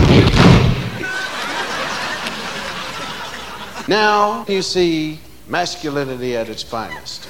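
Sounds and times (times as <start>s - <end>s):
bathroom door slamming: 0.0s - 1.0s
laughter: 0.9s - 4.1s
speech: 3.9s - 7.2s.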